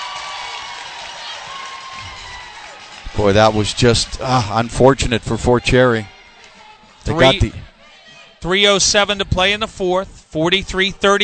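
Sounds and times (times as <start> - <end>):
crowd screaming and cheering: 0.0 - 8.4
speech: 3.2 - 6.1, 7.1 - 7.7, 8.4 - 11.2.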